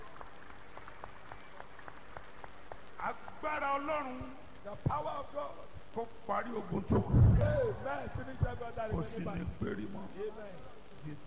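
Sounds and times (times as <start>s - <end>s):
audience clapping: 0.0s - 4.6s
speech: 3.0s - 11.2s.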